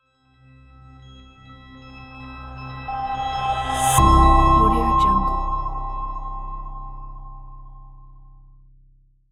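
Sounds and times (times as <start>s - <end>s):
bright logo jingle: 4.0s - 7.1s.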